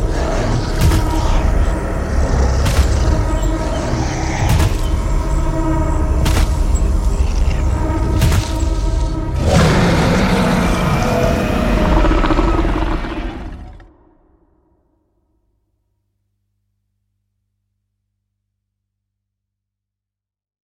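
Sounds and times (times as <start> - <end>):
roar: 0.0 - 14.3.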